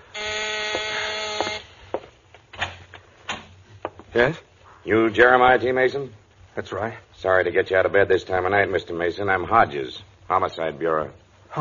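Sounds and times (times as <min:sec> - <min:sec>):
door buzzer: 0:00.0 - 0:01.8
speech: 0:04.2 - 0:11.5.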